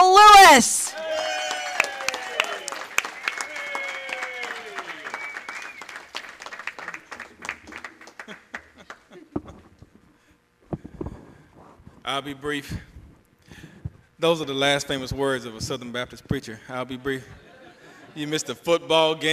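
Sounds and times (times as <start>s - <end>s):
speech: 0.6s - 1.0s, 12.1s - 12.9s, 14.2s - 17.4s, 18.2s - 19.3s
audience applause welcoming a speaker back to the stage: 0.9s - 9.1s.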